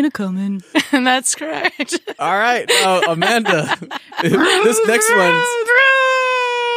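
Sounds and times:
speech: 0.0s - 5.7s
laughter: 0.8s - 6.6s
voice imitating a snowmobile: 4.2s - 5.6s.

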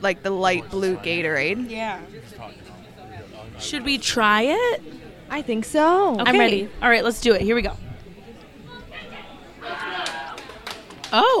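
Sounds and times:
speech: 0.0s - 2.7s, 3.4s - 7.8s, 11.1s - 11.3s
people cheering at a bar: 8.7s - 11.3s.

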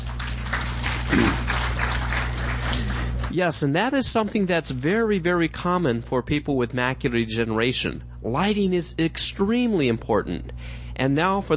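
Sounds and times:
audience clapping hands: 0.0s - 3.4s
speech: 3.3s - 11.5s.

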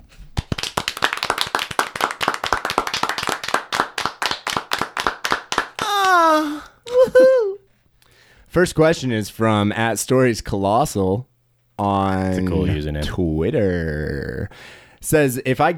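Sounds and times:
people clapping: 0.3s - 7.0s
speech: 8.5s - 15.7s.

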